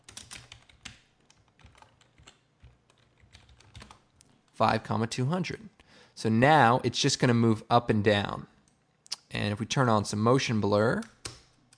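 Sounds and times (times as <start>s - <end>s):
computer keyboard typing a software expression: 0.0s - 4.1s
speech: 4.6s - 8.5s, 9.3s - 11.2s.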